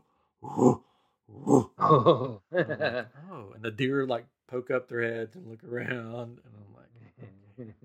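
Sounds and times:
person imitating a bear's grunts: 0.4 - 2.4
speech: 0.5 - 0.8, 1.9 - 6.7, 7.6 - 7.8.

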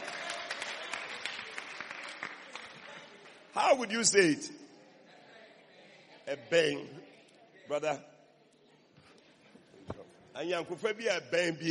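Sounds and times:
crowd audience applause: 0.0 - 3.5
speech: 3.6 - 4.6, 6.3 - 7.1, 7.7 - 8.1, 10.4 - 11.6.

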